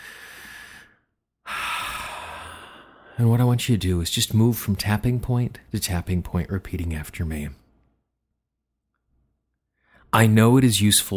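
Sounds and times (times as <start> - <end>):
deep breath during a guided tapping exercise: 0.0 - 3.2, 9.7 - 10.1
speech: 3.2 - 7.6, 10.2 - 11.1.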